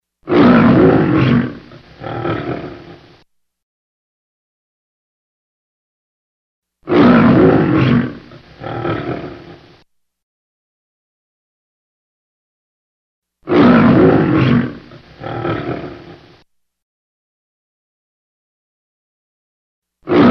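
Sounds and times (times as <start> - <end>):
lion roaring: 0.3 - 3.2, 6.9 - 9.8, 13.5 - 16.4, 20.1 - 20.2.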